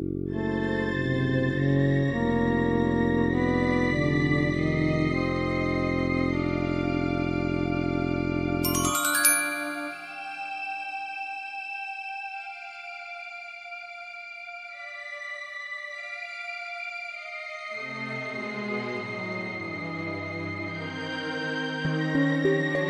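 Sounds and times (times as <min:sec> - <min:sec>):
melancholic instrumental song: 0:00.1 - 0:11.2, 0:17.3 - 0:22.8.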